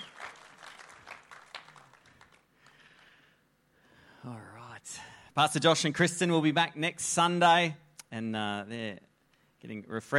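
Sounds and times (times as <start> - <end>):
audience cheering and applauding: 0.0 - 2.5
speech: 4.2 - 10.1.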